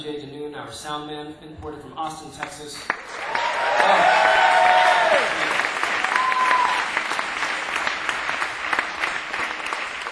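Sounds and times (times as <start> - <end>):
speech: 0.0 - 4.4
audience applause: 2.9 - 10.1.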